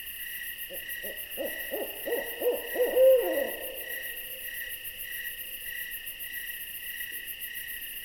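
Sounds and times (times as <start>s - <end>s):
insects trilling: 0.6s - 7.4s
owl giving short hoots: 0.7s - 4.9s.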